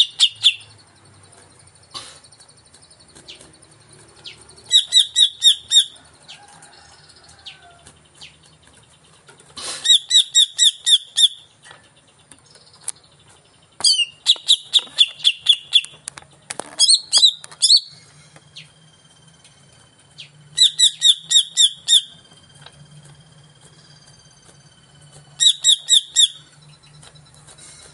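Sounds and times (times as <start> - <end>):
caged greater green leafbird singing vigorously as a lure: 0.0 - 27.9.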